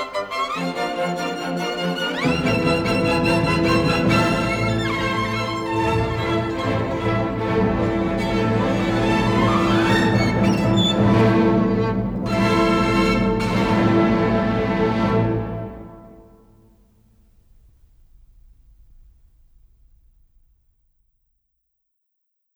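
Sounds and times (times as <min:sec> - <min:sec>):
violin concerto in A minor: 0:00.0 - 0:16.7.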